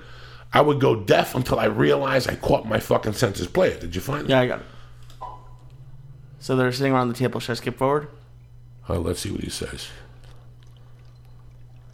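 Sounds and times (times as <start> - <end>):
speech: 0.5 - 4.7, 6.4 - 8.2, 8.8 - 10.1
wine being poured: 7.1 - 11.9.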